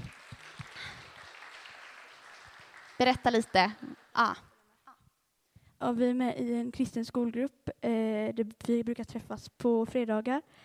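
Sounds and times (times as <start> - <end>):
gathered audience clapping for a group of students: 0.0 - 4.5
speech: 3.0 - 4.5, 5.8 - 10.6.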